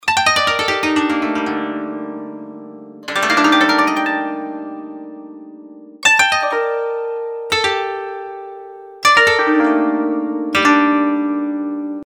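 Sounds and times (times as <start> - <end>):
koto: 0.0 - 12.0.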